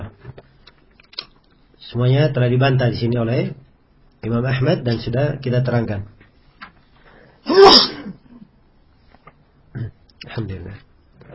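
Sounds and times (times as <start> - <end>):
speech: 1.9 - 3.6, 4.2 - 6.2
sneeze: 7.5 - 8.3.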